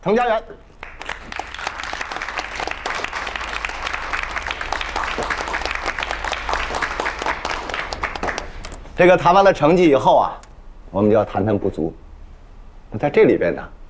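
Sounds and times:
speech: 0.0 - 0.7, 5.2 - 5.4, 9.0 - 12.0, 12.9 - 13.8
audience applause: 0.8 - 8.7.

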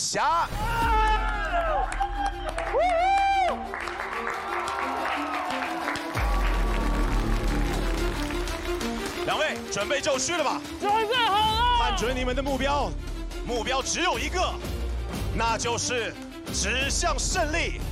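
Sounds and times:
speech: 0.1 - 1.0, 9.3 - 14.7, 15.4 - 17.8
audience applause: 1.4 - 10.6.

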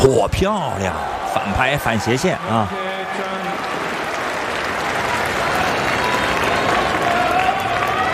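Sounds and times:
speech: 0.1 - 2.8
applause at a tennis match: 3.3 - 8.1.

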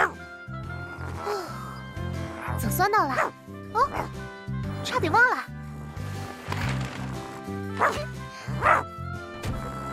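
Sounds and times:
soft music: 0.0 - 9.9
speech: 2.6 - 5.6, 7.8 - 8.8
small dog barking: 7.8 - 8.8.

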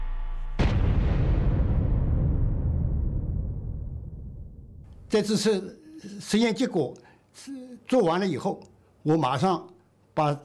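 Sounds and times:
massive blast from a full-scale detonation test in China's nuclear weapons program: 0.0 - 5.1
speech: 5.1 - 10.4.

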